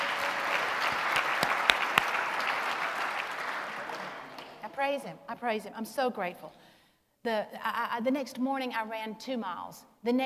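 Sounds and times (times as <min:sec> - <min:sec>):
audience clapping: 0:00.0 - 0:04.6
speech: 0:04.9 - 0:10.2.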